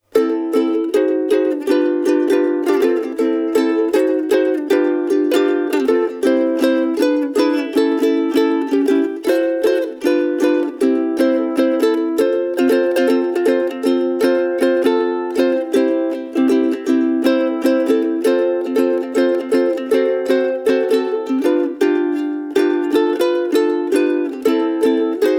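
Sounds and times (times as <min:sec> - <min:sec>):
Kala KA-15S ukulele solo: 0:00.0 - 0:25.3.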